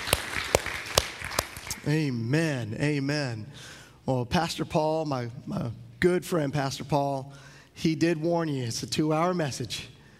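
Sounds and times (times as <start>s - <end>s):
congregation clapping in praise during a morning church service: 0.0s - 1.9s
speech: 1.8s - 9.9s.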